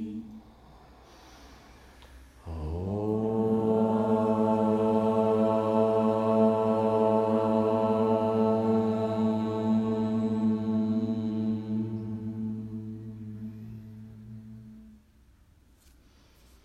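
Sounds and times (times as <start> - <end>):
closing ashtanga mantra chanting: 0.0 - 0.5, 2.4 - 15.0.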